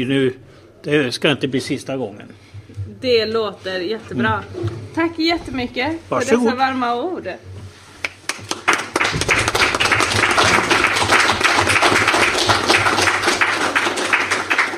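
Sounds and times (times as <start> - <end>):
speech: 0.0 - 7.5
live audience applause: 8.2 - 14.7.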